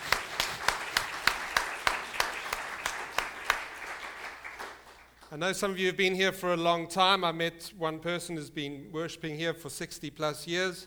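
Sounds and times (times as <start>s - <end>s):
crowd applauding: 0.0s - 5.4s
sharp rhythmic claps: 0.0s - 5.6s
speech: 5.3s - 10.8s.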